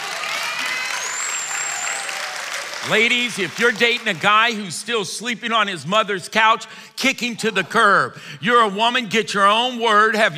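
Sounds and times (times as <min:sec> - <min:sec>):
audience clapping: 0:00.0 - 0:04.8
speech: 0:02.8 - 0:10.3.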